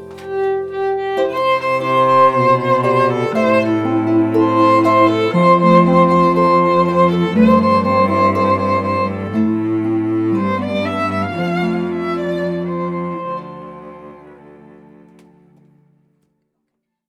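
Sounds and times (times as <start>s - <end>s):
harp trio playing: 0.0s - 15.8s.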